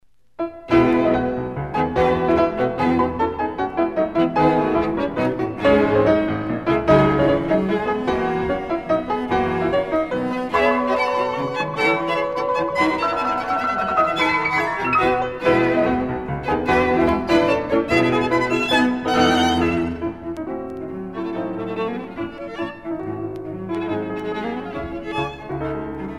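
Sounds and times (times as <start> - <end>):
piano quartet: 0.4 - 26.1.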